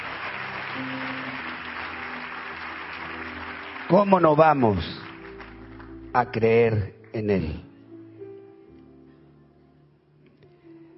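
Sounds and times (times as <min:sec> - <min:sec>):
audience applause: 0:00.0 - 0:06.1
speech: 0:03.9 - 0:05.0, 0:06.1 - 0:07.7.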